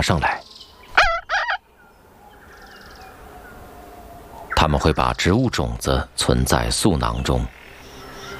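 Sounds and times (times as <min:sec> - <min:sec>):
speech: 0:00.0 - 0:00.4, 0:04.6 - 0:07.6
thick-billed parrot calls: 0:00.9 - 0:01.6.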